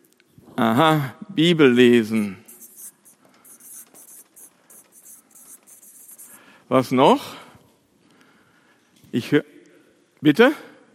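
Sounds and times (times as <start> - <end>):
speech: 0.6 - 2.4, 6.7 - 7.4, 9.1 - 9.5, 10.2 - 10.7
pen scratching on paper while jotting notes: 2.2 - 6.5.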